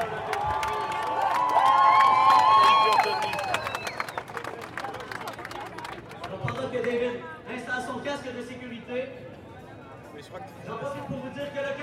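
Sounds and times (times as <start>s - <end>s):
crowd cheering and shouting: 0.0s - 4.0s.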